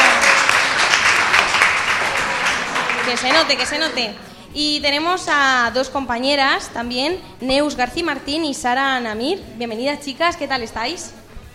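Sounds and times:
audience applause: 0.0 - 4.3
speech: 3.1 - 11.5.

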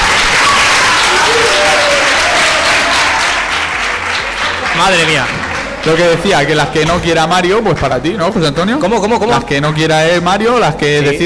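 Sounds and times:
audience applause: 0.0 - 8.2
speech: 4.8 - 11.2.

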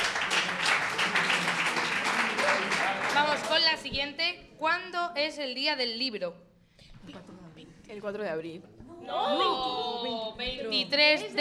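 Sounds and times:
audience applause: 0.0 - 3.8
speech: 3.9 - 11.3.

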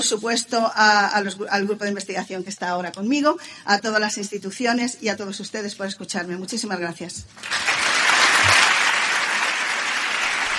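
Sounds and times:
speech: 0.0 - 7.9
audience applause after a lecture: 7.4 - 10.5.

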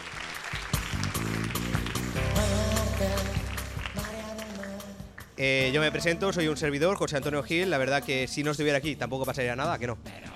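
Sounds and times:
applause: 0.0 - 5.4
speech: 5.4 - 10.2.

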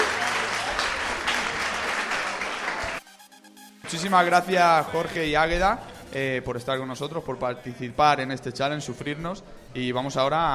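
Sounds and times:
audience applause: 0.0 - 3.0
speech: 3.9 - 10.5.

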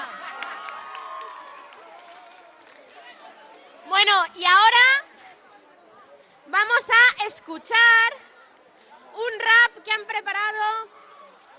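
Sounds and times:
audience applause: 0.0 - 3.7
speech: 4.0 - 5.0, 6.5 - 8.3, 9.2 - 11.0.

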